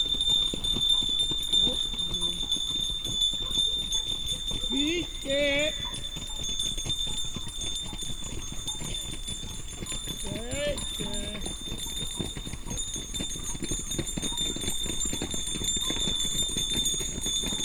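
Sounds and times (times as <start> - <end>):
five-horse team in Hortobagy: 0.0 - 17.6.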